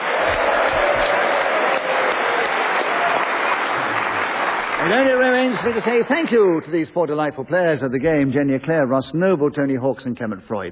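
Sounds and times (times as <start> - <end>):
studio audience applause: 0.0 - 6.8
speech: 4.9 - 10.7.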